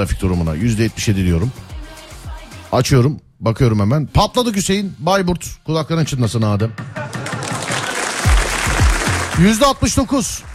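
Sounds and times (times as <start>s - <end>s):
speech: 0.0s - 1.7s, 2.7s - 7.0s, 9.4s - 10.5s
audience applause: 7.0s - 10.5s.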